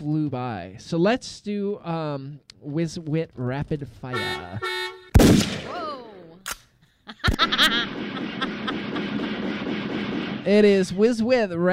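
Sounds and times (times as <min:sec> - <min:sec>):
speech: 0:00.0 - 0:05.4, 0:07.1 - 0:09.2, 0:10.4 - 0:11.7
gunshot sound effect: 0:05.2 - 0:05.8, 0:07.8 - 0:10.9
laughter: 0:07.1 - 0:09.6.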